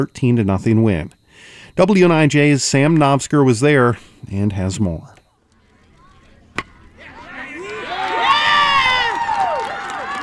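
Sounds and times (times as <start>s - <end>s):
speech: 0.0s - 5.2s
spectators cheering at a baseball game: 6.8s - 10.2s.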